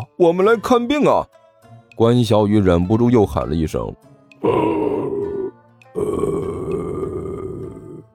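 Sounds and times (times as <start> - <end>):
speech: 0.1 - 1.4, 2.0 - 4.9
old man snoring: 4.4 - 8.1.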